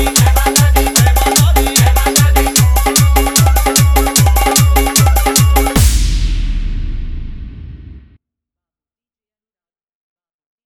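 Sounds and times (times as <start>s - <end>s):
hard bass: 0.0s - 8.2s.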